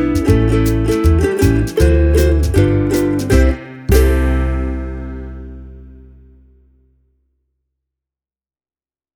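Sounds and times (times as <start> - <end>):
Martin 0X Bamboo guitar: 0.0 - 6.5.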